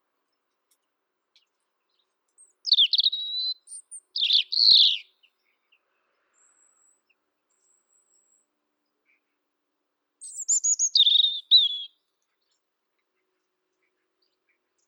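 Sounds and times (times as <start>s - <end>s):
Erithacus rubecula: 2.4s - 5.4s, 10.2s - 12.0s.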